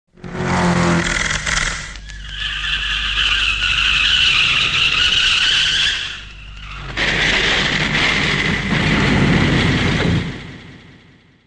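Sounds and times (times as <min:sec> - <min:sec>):
skidding: 0:00.1 - 0:10.4
crash impact: 0:05.7 - 0:11.4.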